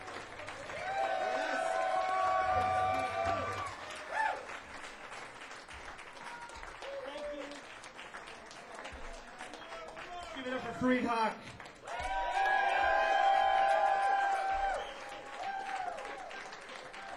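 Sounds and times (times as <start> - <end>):
crowd clapping after live performance: 0.0 - 17.1
sustained whistles and cheers: 0.4 - 4.6, 6.2 - 7.6, 11.8 - 17.1
speech: 10.8 - 11.5.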